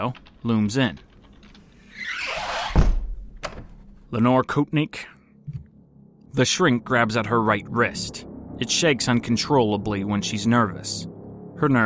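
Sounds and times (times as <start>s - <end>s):
speech: 0.0s - 1.1s, 4.1s - 5.2s, 6.3s - 11.8s
locked door of a high-rise apartment opening: 1.8s - 3.1s.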